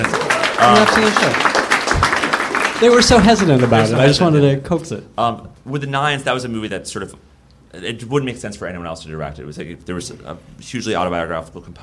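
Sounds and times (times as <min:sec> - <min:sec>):
speech: 0:00.0 - 0:02.2, 0:02.8 - 0:11.8
audience applause: 0:00.0 - 0:04.4.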